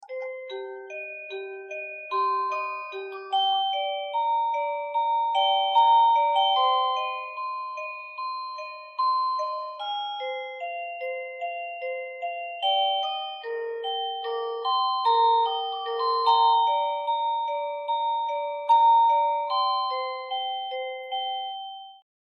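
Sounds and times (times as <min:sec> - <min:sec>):
melody: 0:00.0 - 0:22.0.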